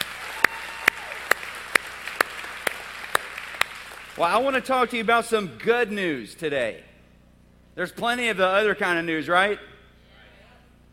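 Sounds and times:
sharp claps from a church congregation: 0.0s - 4.4s
speech: 4.2s - 6.9s, 7.8s - 9.7s.

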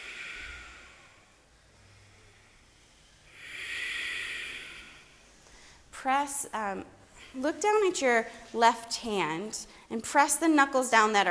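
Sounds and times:
ujjayi yoga breathing through the nose in a power yoga class: 0.0s - 5.9s
speech: 6.0s - 11.3s.

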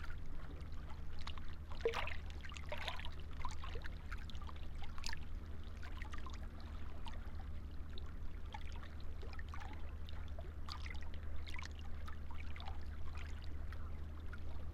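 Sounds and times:
changing tide at the seawall east of Burnham-on-Crouch: 0.0s - 14.7s.

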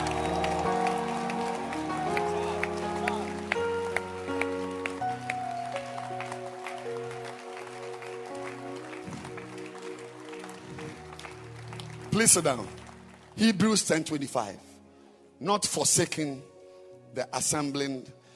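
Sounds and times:
audience clapping hands: 0.0s - 14.1s
speech: 12.2s - 12.8s, 13.4s - 14.7s, 15.4s - 16.5s, 17.2s - 18.2s.

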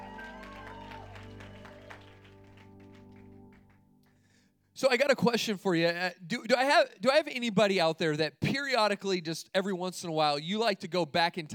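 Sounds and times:
audience applause: 0.0s - 3.8s
sustained low musical tone: 0.0s - 4.0s
speech: 4.8s - 11.5s.

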